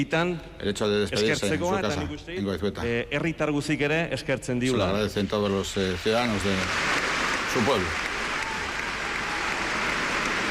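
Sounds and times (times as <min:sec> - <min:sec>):
speech: 0:00.0 - 0:07.0, 0:07.6 - 0:08.1
audience applause: 0:06.2 - 0:10.4.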